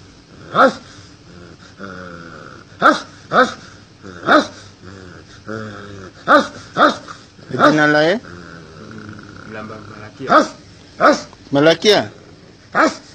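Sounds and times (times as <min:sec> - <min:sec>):
person making whining growl-like vocal sounds: 0:00.3 - 0:02.8, 0:04.0 - 0:06.4, 0:08.0 - 0:10.3
patient foaming at the mouth barking like a dog: 0:00.5 - 0:00.8, 0:02.8 - 0:03.6, 0:04.2 - 0:04.6, 0:06.2 - 0:07.9, 0:10.3 - 0:11.3, 0:12.8 - 0:13.1
speech: 0:00.5 - 0:00.9, 0:02.8 - 0:04.5, 0:05.5 - 0:06.9, 0:07.5 - 0:08.4, 0:09.6 - 0:13.0.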